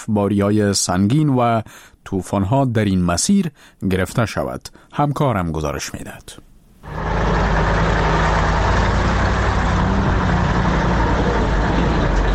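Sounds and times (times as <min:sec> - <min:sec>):
speech: 0:00.0 - 0:07.1
passenger and cargo vehicle traffic: 0:06.8 - 0:12.3.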